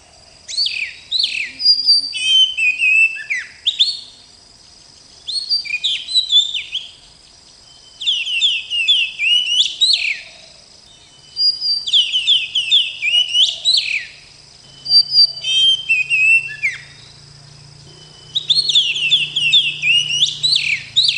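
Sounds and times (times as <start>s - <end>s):
Oriental magpie-robin singing in rolling style: 0.5s - 4.1s, 5.2s - 7.0s, 7.7s - 10.3s, 10.9s - 21.1s.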